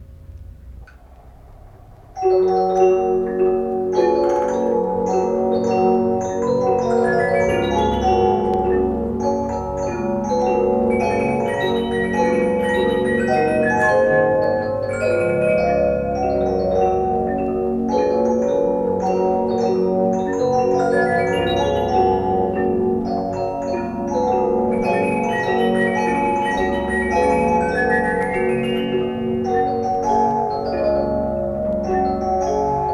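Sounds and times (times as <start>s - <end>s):
music boxes: 2.0s - 32.9s.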